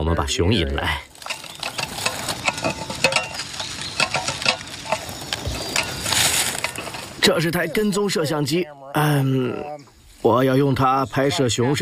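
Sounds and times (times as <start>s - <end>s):
speech: 0.1s - 1.1s, 7.2s - 11.8s
fish broth splashing on the ground: 1.1s - 7.2s.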